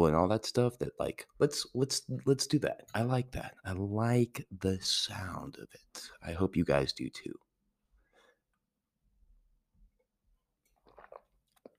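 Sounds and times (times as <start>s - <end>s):
speech: 0.0s - 7.4s
person drinking a sip of water: 10.6s - 11.7s.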